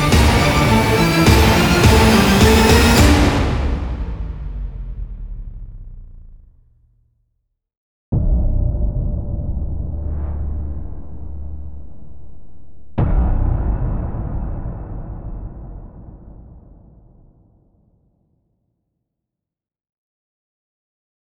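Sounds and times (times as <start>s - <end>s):
dramatic trailer music: 0.0s - 6.5s, 8.2s - 16.7s.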